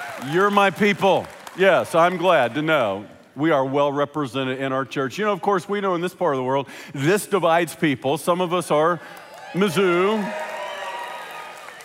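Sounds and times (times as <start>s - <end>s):
audience cheering: 0.0s - 1.2s, 9.2s - 11.8s
speech: 0.2s - 10.5s.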